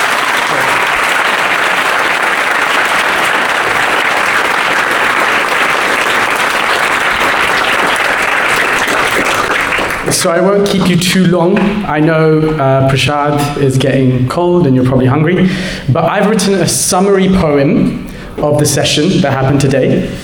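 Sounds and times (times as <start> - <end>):
large crowd applause: 0.0 - 10.4
speech: 10.2 - 20.2.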